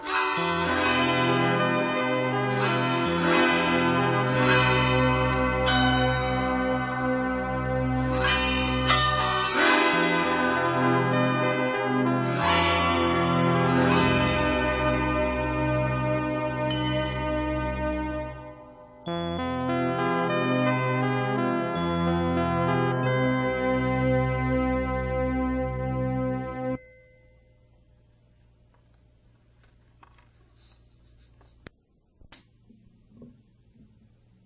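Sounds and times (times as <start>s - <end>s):
harp: 0.0s - 26.9s
DX7 horn-chime synth: 0.1s - 26.9s.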